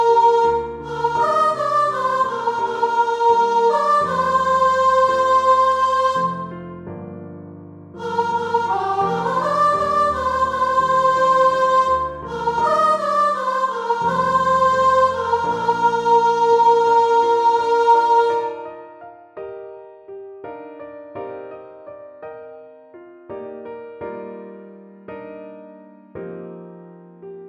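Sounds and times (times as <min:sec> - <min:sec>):
upper voices: 0:00.0 - 0:06.6, 0:08.0 - 0:18.7.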